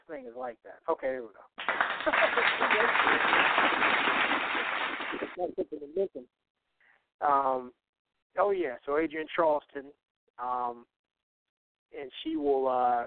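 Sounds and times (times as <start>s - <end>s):
speech: 0.1s - 6.5s, 7.2s - 7.8s, 8.4s - 10.9s, 11.9s - 13.0s
hand claps sound effect: 1.6s - 5.4s
laughter: 1.7s - 3.5s, 5.4s - 6.0s.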